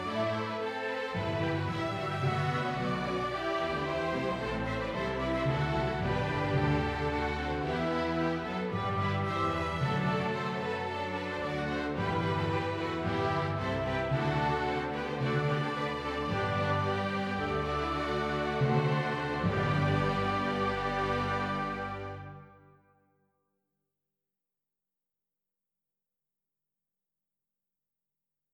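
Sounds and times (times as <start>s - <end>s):
orchestral music in G major: 0.0s - 22.8s.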